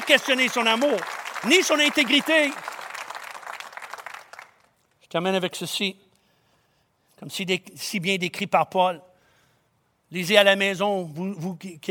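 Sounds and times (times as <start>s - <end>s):
audience applause: 0.0s - 4.7s
speech: 0.1s - 2.7s, 5.1s - 6.0s, 7.2s - 9.1s, 10.1s - 11.8s.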